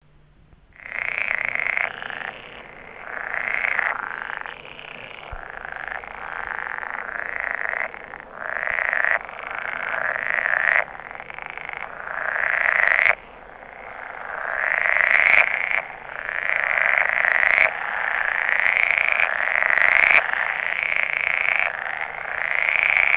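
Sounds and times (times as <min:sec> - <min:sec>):
pool frog mating calls: 0:00.7 - 0:23.1.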